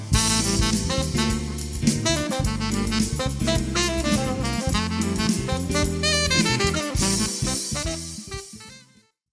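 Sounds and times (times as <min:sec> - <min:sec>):
tenor saxophone: 0:00.0 - 0:09.0.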